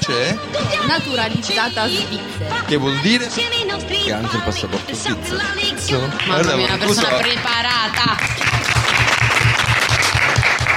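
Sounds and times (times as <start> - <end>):
speech: 0.1 - 8.5
newsroom staff applauding: 6.1 - 10.7.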